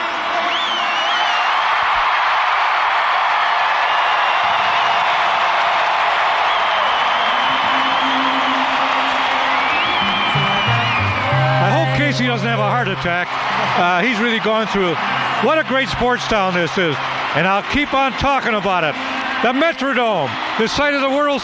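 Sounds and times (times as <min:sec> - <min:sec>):
stadium crowd applauding and cheering: 0:00.0 - 0:21.4
shrill whistles: 0:00.4 - 0:01.7, 0:06.4 - 0:11.6
speech: 0:12.2 - 0:21.4.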